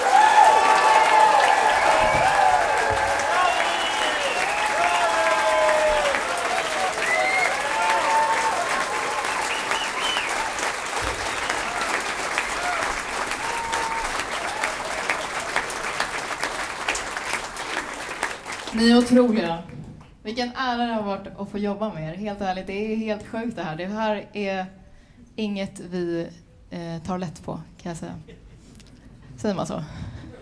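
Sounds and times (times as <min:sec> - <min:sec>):
audience shouts and cheers: 0:00.0 - 0:16.0
audience applause for string orchestra: 0:00.0 - 0:19.1
speech: 0:19.1 - 0:19.6, 0:20.2 - 0:24.8, 0:25.4 - 0:28.4, 0:29.4 - 0:30.0.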